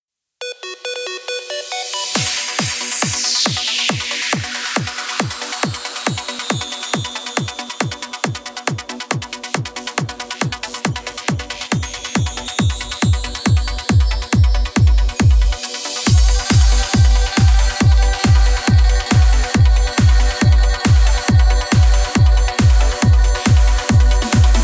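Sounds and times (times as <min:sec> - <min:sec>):
uplifting music mix: 0:00.5 - 0:24.6.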